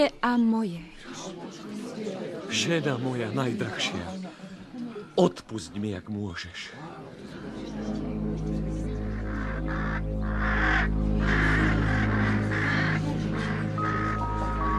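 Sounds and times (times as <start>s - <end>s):
speech: 0.0s - 4.4s, 5.1s - 6.9s
low musical drone: 7.3s - 14.7s
ravens cawing: 9.1s - 14.7s.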